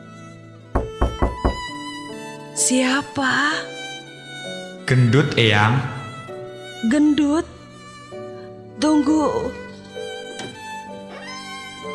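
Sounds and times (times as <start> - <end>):
knocking on a bedroom door: 0.8 - 1.8
speech: 2.6 - 3.8, 4.9 - 6.0, 6.8 - 7.5, 8.8 - 9.6.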